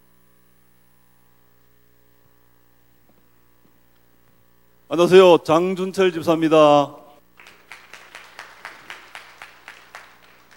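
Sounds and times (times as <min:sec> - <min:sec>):
speech: 0:04.9 - 0:07.0
audience applause: 0:07.4 - 0:10.5.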